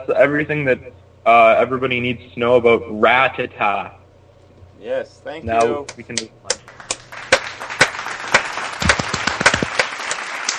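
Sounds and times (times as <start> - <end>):
speech: 0.0 - 4.0, 4.8 - 6.5
fake applause sound effect: 6.5 - 10.5.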